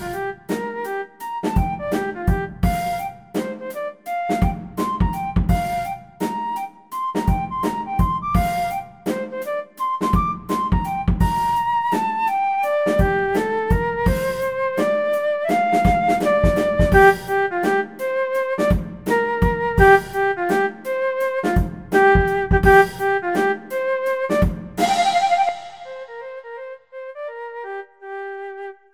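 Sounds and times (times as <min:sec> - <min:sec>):
flute playing a funk study: 0:00.0 - 0:28.8.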